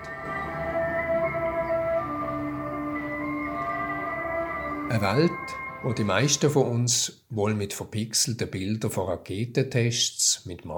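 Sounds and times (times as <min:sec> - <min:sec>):
Far Eastern-style welcome music at museum entrance: 0:00.0 - 0:06.6
speech: 0:04.9 - 0:10.7.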